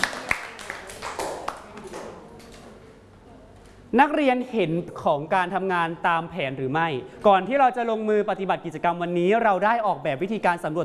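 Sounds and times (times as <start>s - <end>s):
students clapping for themselves: 0.0s - 2.2s
speech: 3.9s - 10.8s.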